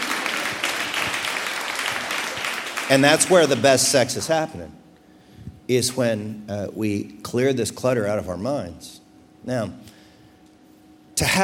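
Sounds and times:
audience applause: 0.0 - 4.4
speech: 2.9 - 4.8, 5.7 - 10.0, 11.2 - 11.4.

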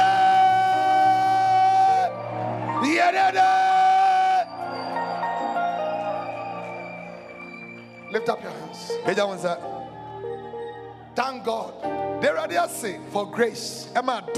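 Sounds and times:
audience shouting praise: 0.0 - 11.7
speech: 8.2 - 9.9, 11.2 - 14.3.

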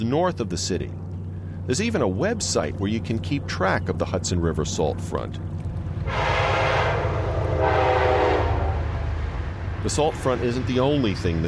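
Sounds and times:
speech: 0.0 - 6.3, 9.8 - 11.4
train passing: 0.8 - 11.4
train horn: 6.0 - 9.1.

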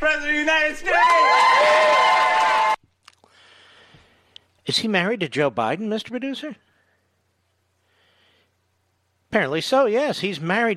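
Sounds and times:
audience clapping and cheering: 0.4 - 2.8
speech: 4.7 - 6.7, 9.3 - 10.7.

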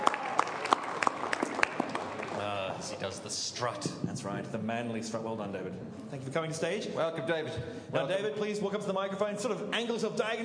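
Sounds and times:
crowd applause: 0.0 - 3.2
speech: 3.0 - 10.4.

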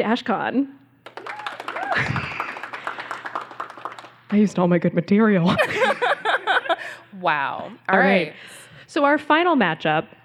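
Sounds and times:
speech: 0.0 - 1.2, 2.0 - 2.2, 4.3 - 6.0, 7.1 - 10.2
audience clapping to vote: 1.0 - 4.7
whoops and cheers: 1.2 - 2.6
laughter: 1.8 - 3.2, 5.5 - 7.1.

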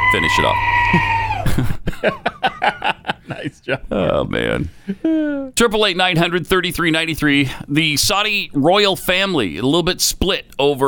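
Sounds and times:
scream: 0.0 - 1.5
speech: 0.1 - 2.8, 3.4 - 10.8
laughter: 0.9 - 3.9.

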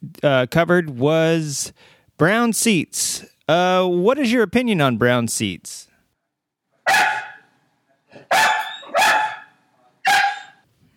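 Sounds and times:
speech: 0.1 - 5.9
dog barking: 6.8 - 7.5, 8.2 - 10.6.

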